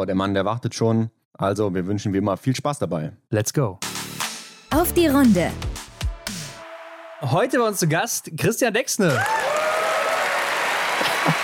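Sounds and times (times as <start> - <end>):
speech: 0.0 - 3.9, 4.7 - 5.7, 7.2 - 9.5
audience applause: 9.0 - 11.4.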